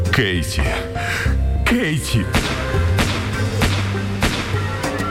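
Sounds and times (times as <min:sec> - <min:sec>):
speech: 0:00.2 - 0:00.8, 0:01.7 - 0:02.5
gunshots: 0:02.3 - 0:05.0.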